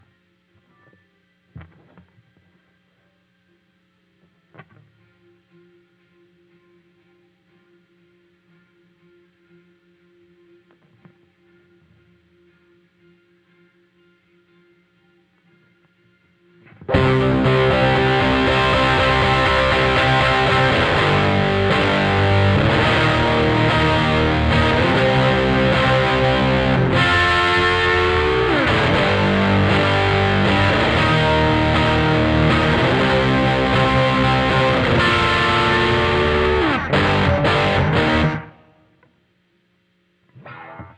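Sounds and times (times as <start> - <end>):
guitar: 0.0 - 39.2, 40.2 - 40.9.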